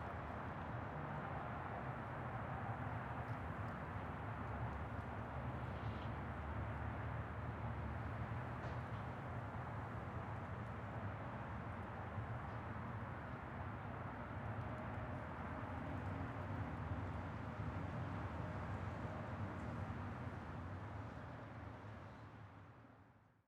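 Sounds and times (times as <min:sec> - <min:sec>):
quiet parking lot ambience: 0:00.1 - 0:22.8.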